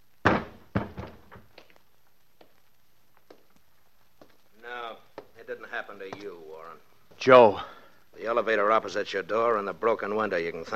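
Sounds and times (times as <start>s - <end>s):
heavy thud on floor: 0.2s - 1.5s
speech: 5.8s - 7.7s, 8.3s - 10.7s.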